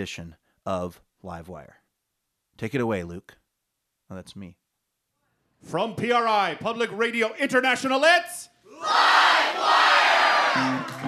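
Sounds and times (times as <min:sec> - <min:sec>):
speech: 0:00.0 - 0:01.8, 0:02.6 - 0:03.4, 0:04.1 - 0:04.6, 0:05.6 - 0:09.9, 0:10.6 - 0:11.0
live studio audience at Mississippi Studios in Portland, Oregon cheering: 0:08.8 - 0:11.0.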